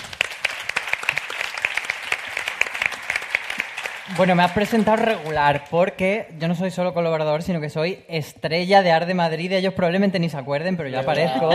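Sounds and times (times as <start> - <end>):
audience applause: 0.0 - 5.7
speech: 4.1 - 11.5
laughter: 11.1 - 11.5.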